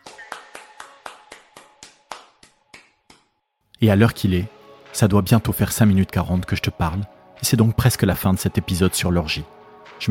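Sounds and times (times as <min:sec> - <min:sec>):
hands clapping: 0:00.0 - 0:03.4
speech: 0:03.8 - 0:10.0.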